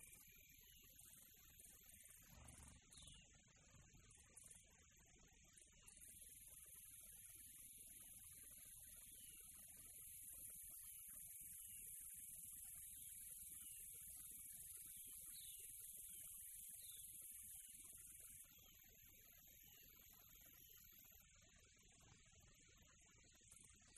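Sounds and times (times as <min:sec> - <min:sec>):
quiet tropical nature ambience: 0:00.0 - 0:23.9.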